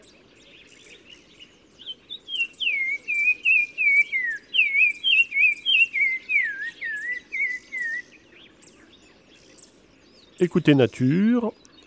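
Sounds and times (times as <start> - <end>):
black-crowned tchagra singing rich whistled notes: 1.8 - 8.6
speech: 10.4 - 11.6.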